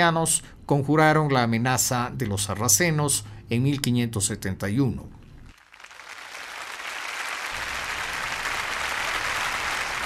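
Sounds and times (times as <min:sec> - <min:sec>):
speech: 0:00.0 - 0:05.2
audience applauding musicians: 0:05.5 - 0:10.0.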